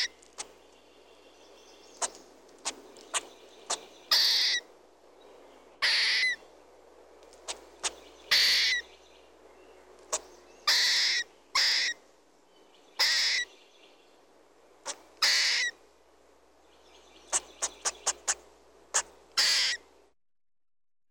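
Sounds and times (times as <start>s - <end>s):
squirrel voice: 2.0s - 4.7s, 5.8s - 6.4s, 7.5s - 8.8s, 10.1s - 12.0s, 13.0s - 13.5s, 14.8s - 15.8s, 17.3s - 19.9s.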